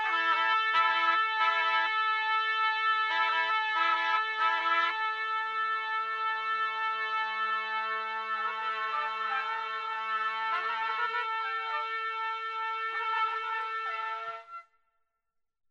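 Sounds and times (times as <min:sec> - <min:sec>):
trumpet loop: 0:00.0 - 0:14.6.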